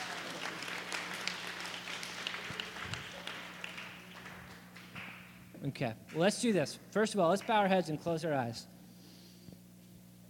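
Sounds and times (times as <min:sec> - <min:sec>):
audience applause: 0:00.0 - 0:05.2
speech: 0:05.6 - 0:08.7.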